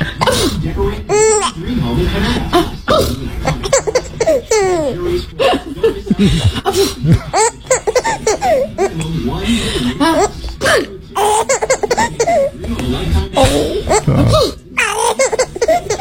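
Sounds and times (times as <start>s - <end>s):
adult voices: 0.0s - 15.9s
baby laughing and giggling: 1.1s - 1.6s, 3.0s - 9.1s, 10.0s - 12.8s, 13.4s - 15.9s.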